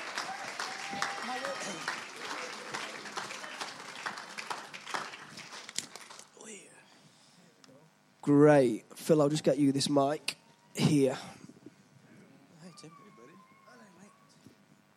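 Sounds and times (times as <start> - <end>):
audience applause: 0.0 - 6.3
speech: 0.9 - 2.8, 8.2 - 11.4.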